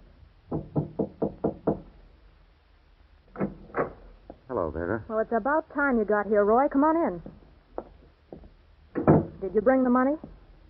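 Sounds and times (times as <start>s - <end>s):
knocking on a door: 0.5s - 1.9s, 7.2s - 9.4s
speech: 4.8s - 7.4s, 9.5s - 10.3s.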